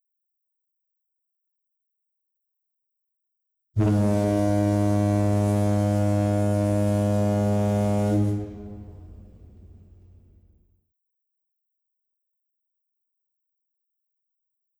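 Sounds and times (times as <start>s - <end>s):
Hamburg foghorn: 3.8s - 10.2s.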